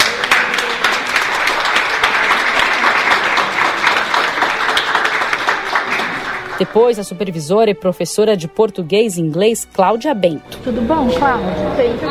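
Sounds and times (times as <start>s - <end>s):
crowd applause: 0.0s - 7.0s
speech: 6.6s - 12.0s.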